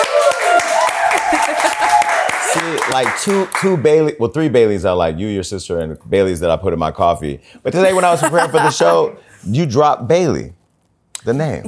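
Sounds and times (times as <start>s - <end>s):
high voices or whoops: 0.0s - 2.4s
audience clapping: 0.0s - 3.8s
speech: 2.9s - 10.6s, 11.2s - 11.6s.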